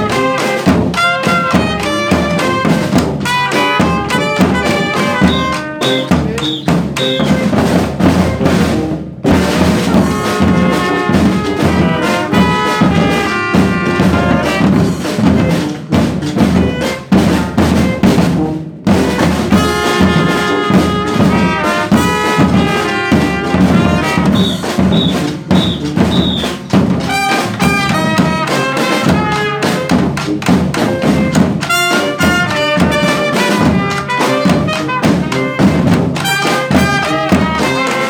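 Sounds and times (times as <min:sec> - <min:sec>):
brass and batucada drumming: 0:00.0 - 0:38.0.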